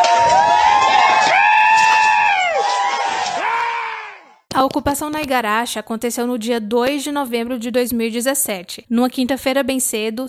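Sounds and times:
protesters shouting during farm occupation: 0.0 - 4.4
high-pitched wailing cries: 1.1 - 4.3
speech: 4.7 - 10.2.

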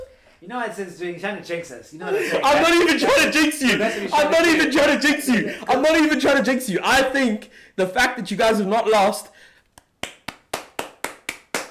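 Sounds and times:
speech: 0.4 - 9.5
laughter: 2.0 - 6.4
hand clapping: 9.6 - 11.6.

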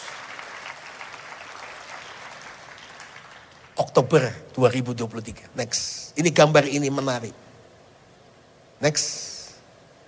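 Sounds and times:
crowd applause: 0.0 - 3.8
speech: 3.8 - 7.5, 8.8 - 9.3.

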